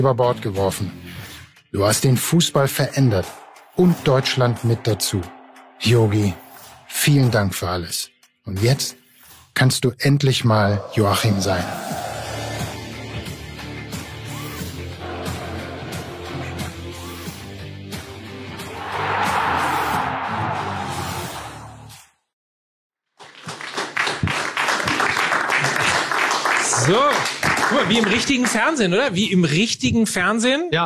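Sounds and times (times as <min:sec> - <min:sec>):
speech: 0:00.0 - 0:09.0, 0:09.6 - 0:12.0, 0:28.3 - 0:30.8
music: 0:00.0 - 0:22.3
crowd applause: 0:02.8 - 0:06.9, 0:11.0 - 0:17.3, 0:18.7 - 0:21.5, 0:23.2 - 0:28.8.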